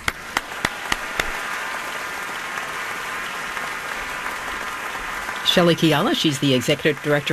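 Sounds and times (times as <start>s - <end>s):
concert hall audience applause at the Ordway Center for the Performing Arts: 0.0s - 7.3s
speech: 5.5s - 7.3s.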